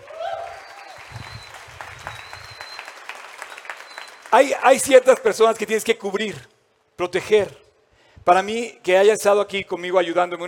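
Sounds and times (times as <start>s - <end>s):
whistle or cheer: 0.0s - 4.3s
audience applause: 0.0s - 4.6s
speech: 4.3s - 7.6s, 8.2s - 10.4s.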